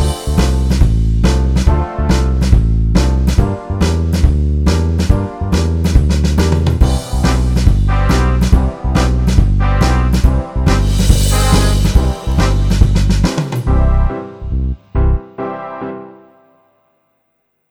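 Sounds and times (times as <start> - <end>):
jazz big band playing: 0.0 - 15.7.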